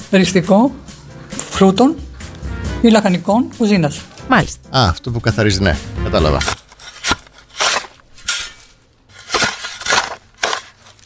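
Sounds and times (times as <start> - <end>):
speech: 0.1 - 0.9, 1.6 - 2.1, 2.8 - 6.6
shovel digging soil: 5.8 - 11.0.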